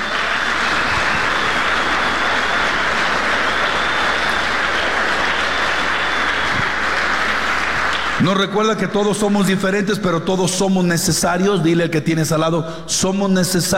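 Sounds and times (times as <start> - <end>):
audience applause: 0.0 - 8.6
speech: 8.2 - 13.7.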